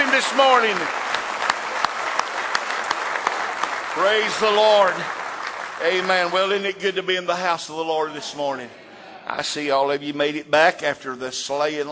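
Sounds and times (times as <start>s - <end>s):
sharp louder claps in unison: 0.0s - 6.9s
church congregation clapping in praise during morning worship: 0.0s - 8.6s
speech: 0.1s - 1.1s, 4.0s - 5.2s, 5.8s - 11.9s.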